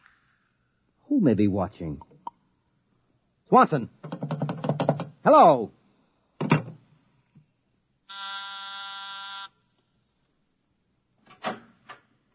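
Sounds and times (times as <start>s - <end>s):
speech: 1.1s - 2.1s, 3.5s - 4.2s, 5.2s - 5.8s
office intercom buzzer: 8.1s - 9.6s.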